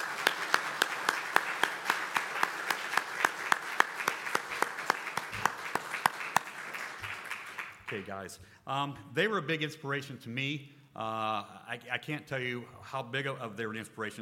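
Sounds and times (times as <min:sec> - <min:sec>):
audience applause: 0:00.0 - 0:08.1
speech: 0:07.9 - 0:14.1.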